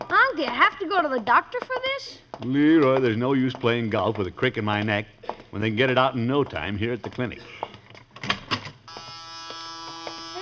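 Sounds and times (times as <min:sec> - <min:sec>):
speech: 0:00.3 - 0:07.8
clinic door buzzer: 0:08.9 - 0:10.4.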